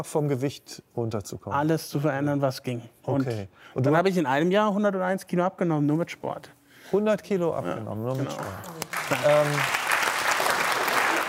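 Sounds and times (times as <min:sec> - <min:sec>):
speech: 0:00.0 - 0:09.8
group clapping in a talk-show round: 0:08.0 - 0:11.2.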